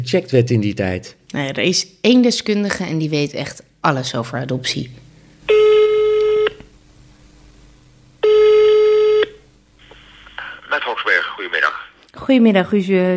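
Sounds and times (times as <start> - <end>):
speech: 0.0 - 5.0, 12.3 - 13.1
telephone ringing: 5.5 - 6.6, 8.2 - 9.4.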